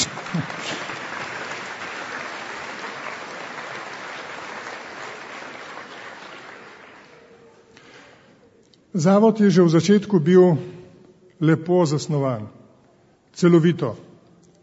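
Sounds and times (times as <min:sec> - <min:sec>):
audience applause: 0:00.0 - 0:08.2
speech: 0:09.0 - 0:10.8, 0:11.4 - 0:12.6, 0:13.3 - 0:14.1.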